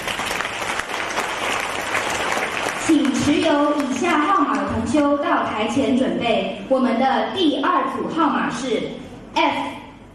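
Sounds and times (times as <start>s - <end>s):
audience applause at a ceremony: 0.0s - 3.2s
speech: 2.9s - 9.8s.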